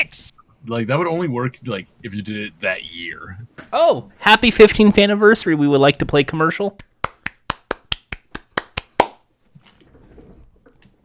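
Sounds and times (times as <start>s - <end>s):
speech: 0.0s - 6.9s
crowd hand claps: 6.8s - 9.2s.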